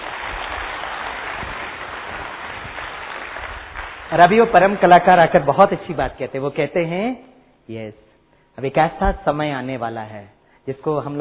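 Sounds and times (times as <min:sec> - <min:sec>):
loud clapping: 0:00.0 - 0:05.2
speech: 0:04.1 - 0:08.0, 0:08.6 - 0:11.1.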